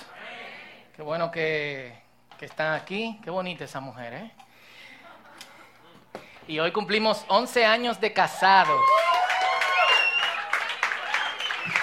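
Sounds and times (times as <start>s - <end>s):
speech: 1.0s - 4.4s, 6.5s - 9.0s
audience applause: 8.6s - 11.8s.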